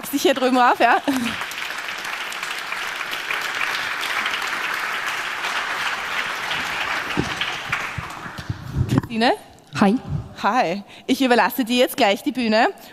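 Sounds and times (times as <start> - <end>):
applause: 0.0 - 8.7
speech: 0.1 - 1.5, 9.2 - 12.8.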